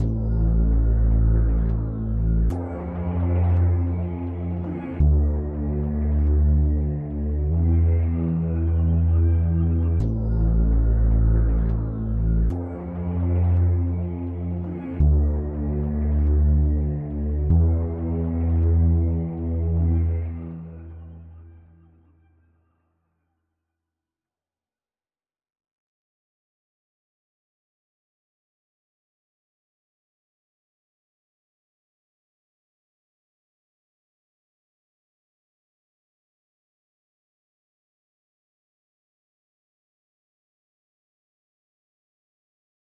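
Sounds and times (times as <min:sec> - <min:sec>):
synthesizer: 0:00.0 - 0:23.0.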